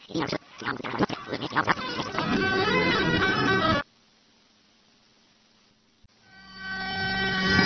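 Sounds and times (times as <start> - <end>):
rewind sound: 0.1 - 3.9, 6.2 - 7.6.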